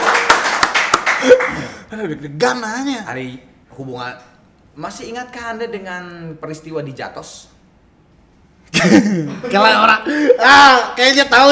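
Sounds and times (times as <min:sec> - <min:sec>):
hands clapping: 0:00.0 - 0:01.6
speech: 0:01.3 - 0:07.6, 0:08.7 - 0:11.5
laughter: 0:08.7 - 0:10.6.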